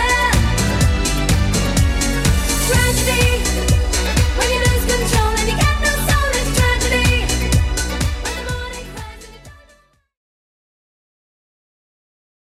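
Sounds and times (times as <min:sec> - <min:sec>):
90s style music: 0:00.0 - 0:10.0.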